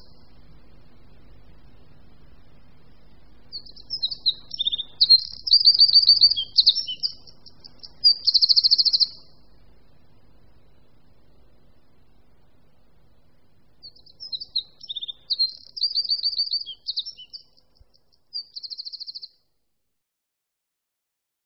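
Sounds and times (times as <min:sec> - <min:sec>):
Eurasian wren chattering song: 0:03.5 - 0:09.4, 0:13.8 - 0:19.4.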